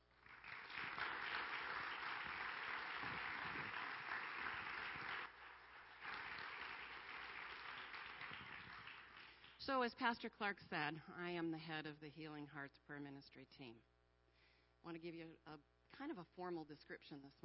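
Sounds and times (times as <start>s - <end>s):
audience applause: 0.0s - 9.6s
speech: 9.6s - 13.9s, 14.8s - 17.4s.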